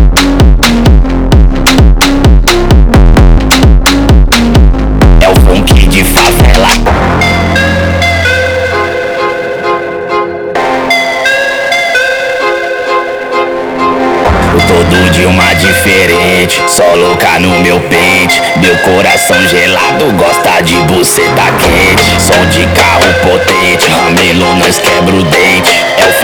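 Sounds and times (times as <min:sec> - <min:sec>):
Brazilian phonk music: 0:00.0 - 0:26.2.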